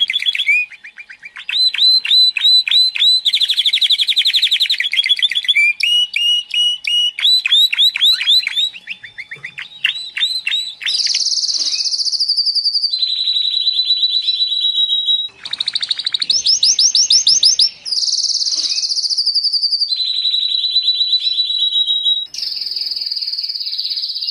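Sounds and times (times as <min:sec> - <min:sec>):
canary singing actively, a model song for training other birds: 0:00.0 - 0:24.2.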